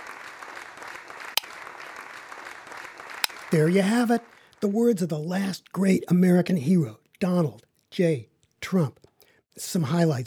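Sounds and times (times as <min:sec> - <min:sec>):
crowd applause sound effect track: 0:00.0 - 0:04.6
speech: 0:03.5 - 0:09.0, 0:09.6 - 0:10.2.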